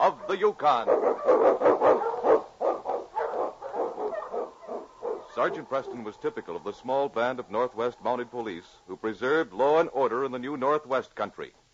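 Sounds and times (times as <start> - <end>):
husky sled dogs barking excitedly: 0.0 - 6.8
speech: 0.3 - 2.4, 5.4 - 11.6.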